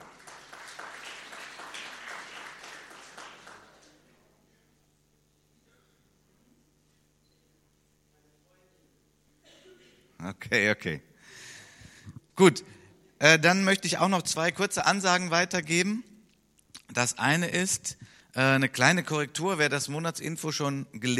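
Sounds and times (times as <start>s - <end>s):
crowd applauding: 0.0s - 4.0s
quiet hum: 0.0s - 21.1s
speech: 10.3s - 11.1s, 12.4s - 16.1s, 16.9s - 21.1s.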